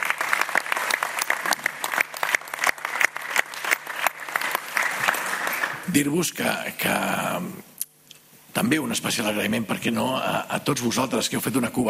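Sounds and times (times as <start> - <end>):
audience applauding: 0.0 - 5.9
speech: 5.9 - 7.7, 8.6 - 11.8.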